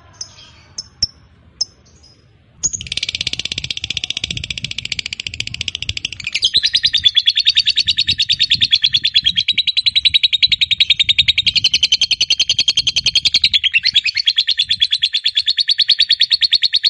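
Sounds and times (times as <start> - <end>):
fighter-type lovebird giving drawn-out chattering song: 0.1 - 16.8.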